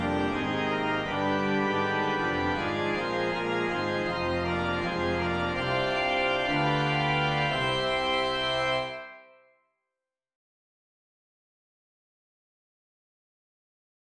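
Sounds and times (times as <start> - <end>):
syncopated organ music: 0.0 - 9.3.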